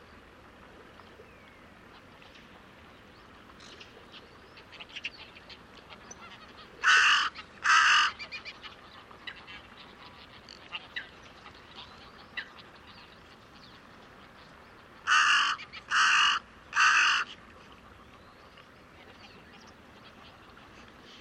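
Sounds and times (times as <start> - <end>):
bird cawing: 6.8 - 8.2, 15.0 - 17.3.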